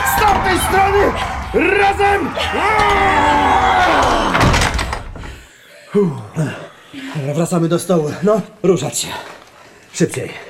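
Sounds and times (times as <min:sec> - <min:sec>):
heavy door slam: 0:00.0 - 0:05.4
speech: 0:00.7 - 0:04.4, 0:05.9 - 0:10.4.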